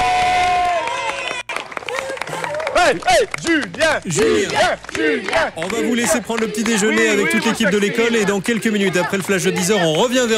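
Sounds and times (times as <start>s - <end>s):
crowd whooping and shouting: 0.0s - 2.9s
crowd clapping for children: 0.0s - 10.3s
speech: 2.9s - 10.3s.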